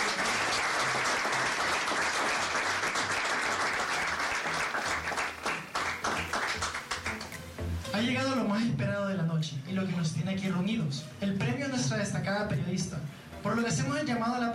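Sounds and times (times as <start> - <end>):
crowd applauding: 0.0 - 7.5
speech: 8.0 - 14.5.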